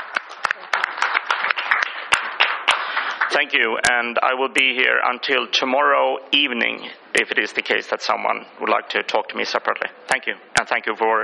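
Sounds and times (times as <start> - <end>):
audience clapping: 0.0 - 3.6
speech: 3.4 - 11.2.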